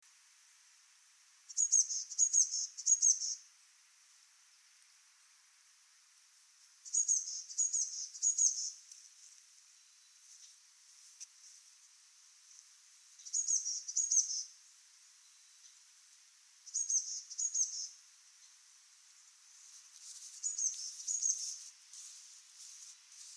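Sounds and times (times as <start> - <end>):
quiet hiss: 0.0 - 23.3
Eurasian blue tit calling: 1.5 - 3.4, 6.8 - 8.8, 13.2 - 14.5, 16.7 - 18.0, 20.4 - 22.1.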